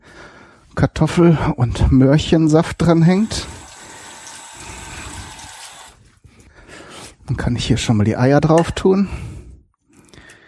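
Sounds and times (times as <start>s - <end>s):
speech: 0.8s - 3.6s, 7.5s - 9.3s
tap water running as hands are rinsed in a kitchen: 2.8s - 6.0s.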